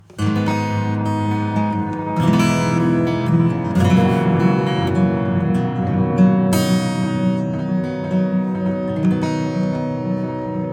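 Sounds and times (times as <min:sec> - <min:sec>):
acoustic sound with delay: 0:00.0 - 0:10.7.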